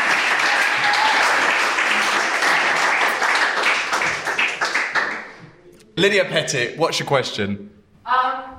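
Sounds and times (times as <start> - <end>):
audience applause: 0.0 - 5.4
speech: 6.0 - 8.3.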